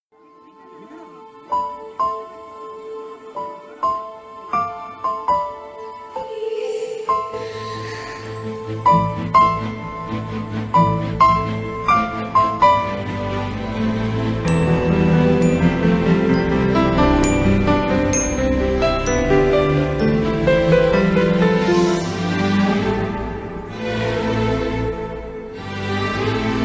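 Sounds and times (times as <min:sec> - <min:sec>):
love failure background music: 0:00.2 - 0:26.6.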